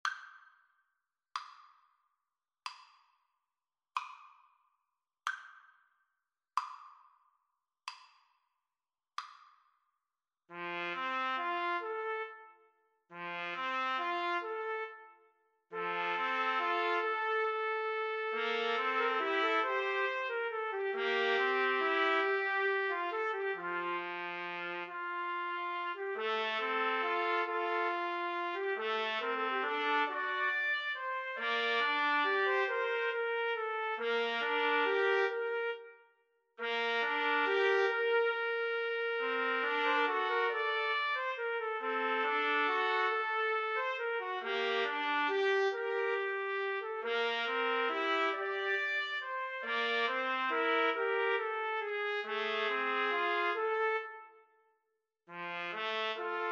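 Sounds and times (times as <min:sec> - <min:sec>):
trumpet trio: 0:10.5 - 0:36.0, 0:36.6 - 0:54.3, 0:55.3 - 0:56.5.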